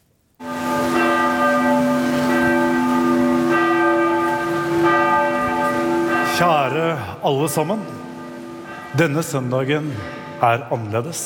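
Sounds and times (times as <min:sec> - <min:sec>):
cathedral church bells ringing in Norway for memorial service: 0:00.4 - 0:11.2
speech: 0:07.2 - 0:08.0, 0:08.9 - 0:11.2.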